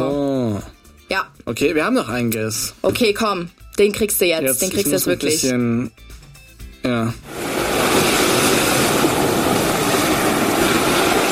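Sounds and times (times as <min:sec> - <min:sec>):
speech: 0:01.2 - 0:06.2
ocean waves: 0:07.3 - 0:11.2.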